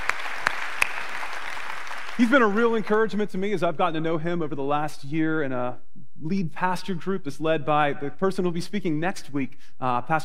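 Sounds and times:
audience applause: 0:00.0 - 0:03.0
speech: 0:02.2 - 0:10.2.

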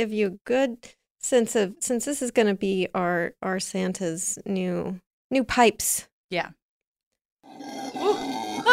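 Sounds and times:
speech: 0:00.0 - 0:06.6
howler monkeys howling: 0:07.5 - 0:08.7.

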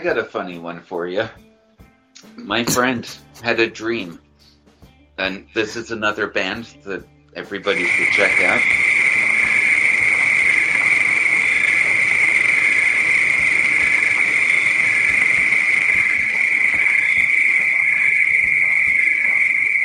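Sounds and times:
speech: 0:00.0 - 0:01.5, 0:02.2 - 0:04.2, 0:05.2 - 0:08.8
crickets chirping: 0:07.7 - 0:19.8.

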